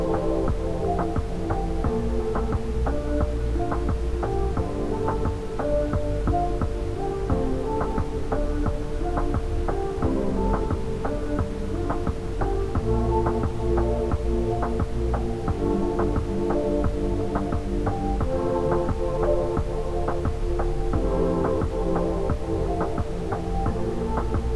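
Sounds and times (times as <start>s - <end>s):
ambient music for chakra meditation: 0.0s - 24.5s.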